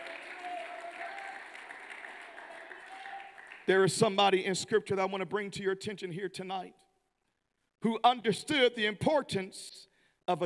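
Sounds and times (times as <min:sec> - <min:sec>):
audience clapping: 0:00.0 - 0:04.0
speech: 0:03.7 - 0:06.8, 0:07.8 - 0:10.4.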